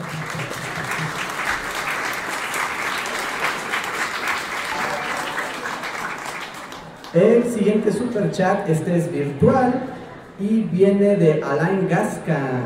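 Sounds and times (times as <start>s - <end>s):
audience applause: 0.0s - 7.2s
speech: 7.1s - 12.6s.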